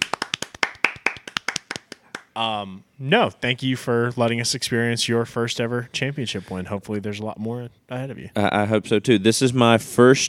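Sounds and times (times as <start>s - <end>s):
applause: 0.0s - 2.4s
speech: 2.4s - 10.2s.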